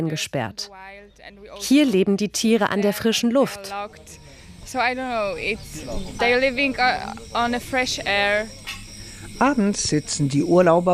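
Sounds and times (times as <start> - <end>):
speech: 0.0 - 8.8, 9.4 - 10.9
cicadas chirping at night: 0.1 - 10.9.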